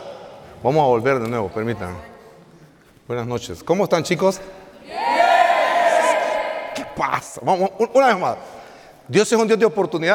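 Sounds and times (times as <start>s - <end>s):
speech: 0.6s - 2.1s, 3.1s - 5.1s, 7.0s - 8.5s, 9.1s - 10.1s
crowd shouting and cheering: 4.8s - 7.4s.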